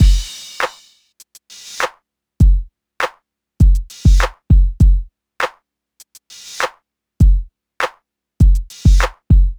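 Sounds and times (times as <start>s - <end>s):
hip hop drum beat: 0.0s - 2.7s, 3.6s - 5.1s, 6.0s - 7.5s, 8.4s - 9.5s.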